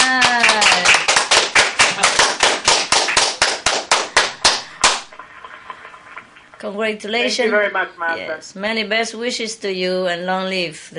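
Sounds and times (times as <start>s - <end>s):
group clapping in unison: 0.0s - 5.3s
speech: 6.7s - 10.9s.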